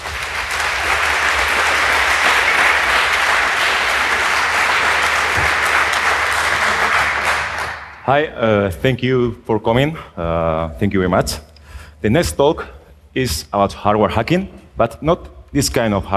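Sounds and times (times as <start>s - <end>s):
audience applause welcoming two speakers to a hardware hacking talk: 0.0s - 8.2s
speech: 8.1s - 16.1s.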